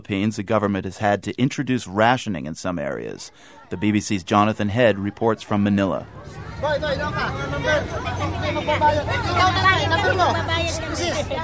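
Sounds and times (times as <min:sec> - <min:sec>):
speech: 0:00.0 - 0:11.4
impatient crowd outside a government rice warehouse in Manila: 0:02.7 - 0:11.4.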